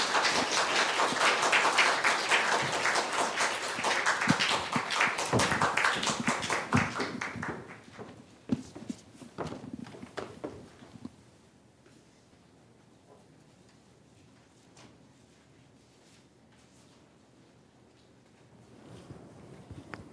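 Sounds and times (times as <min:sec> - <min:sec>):
roomful of people clapping welcoming a speaker: 0:00.0 - 0:08.0.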